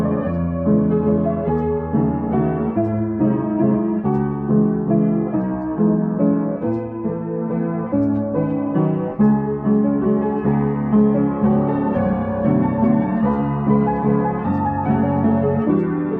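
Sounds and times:
distorted slowed piano with reverb: 0.0s - 16.1s.

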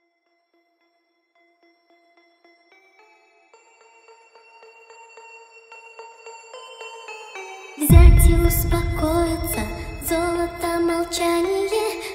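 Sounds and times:
hardstyle remix: 7.9s - 12.0s.

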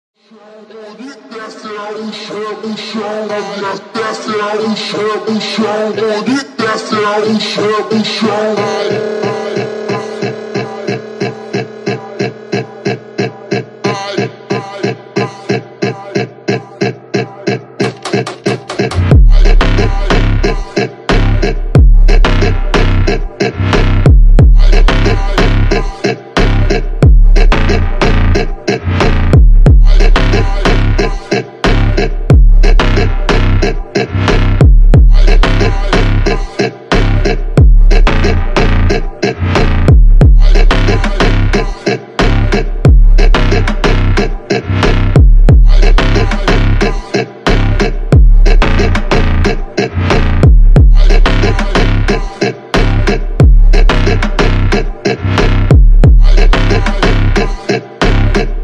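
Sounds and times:
slowed Brazilian funk carioca with reverb: 0.7s - 58.6s.

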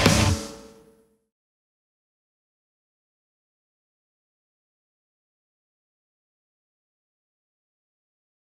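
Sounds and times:
metal cover song: 0.0s - 1.0s.

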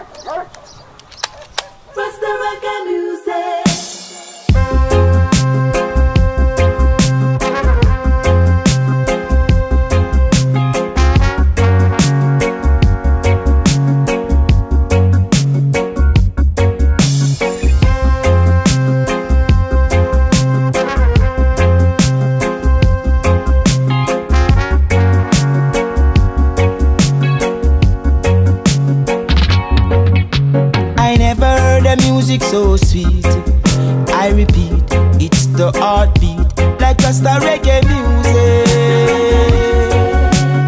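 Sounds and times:
rasta reggae music: 1.2s - 40.6s.

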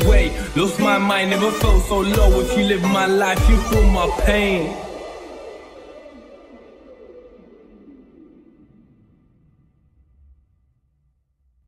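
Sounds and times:
clarinet remix: 0.0s - 6.8s.

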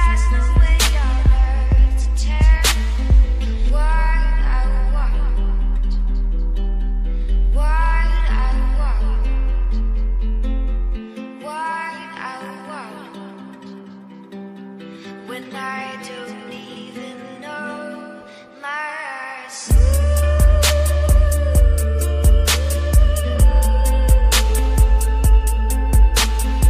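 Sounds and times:
bass boosted music: 0.0s - 10.8s, 19.7s - 26.6s.

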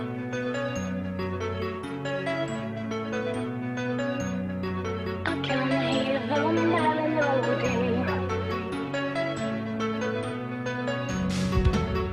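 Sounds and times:
melody: 0.0s - 12.1s
bass beats: 11.2s - 12.1s.

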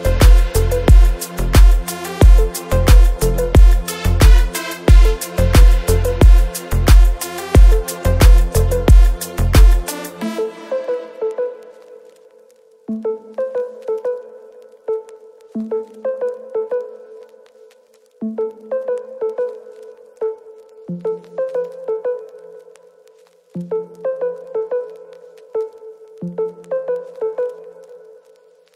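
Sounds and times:
boosted bass: 0.0s - 9.9s.

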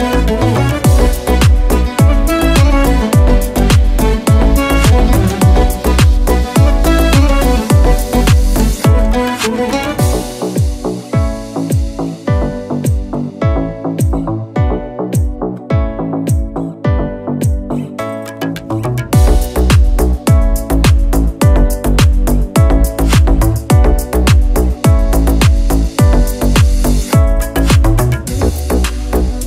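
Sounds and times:
ethnic deep house instrumental: 0.0s - 29.4s.

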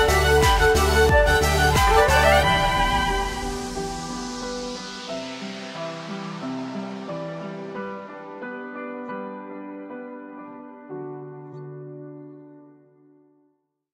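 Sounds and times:
cello: 0.0s - 4.7s.

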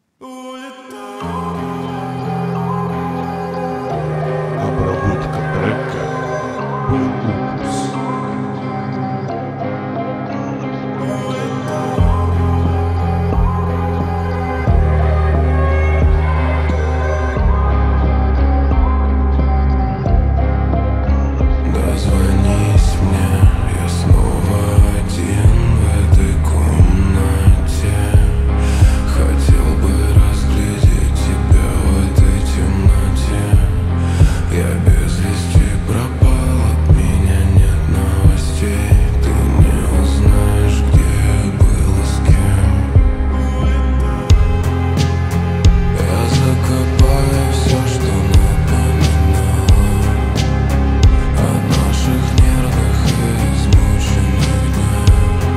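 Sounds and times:
slowed reverb music: 0.2s - 55.5s.

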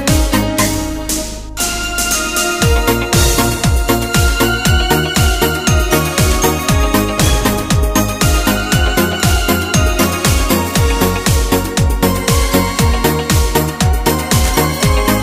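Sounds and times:
80s euro disco instrumental music in Korg Pa4X style: 0.0s - 15.2s.

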